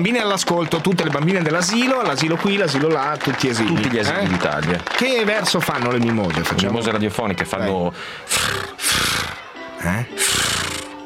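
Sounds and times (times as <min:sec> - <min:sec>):
speech: 0:00.0 - 0:08.8, 0:09.8 - 0:10.6
voice imitating a cat's purring growl: 0:08.3 - 0:11.0.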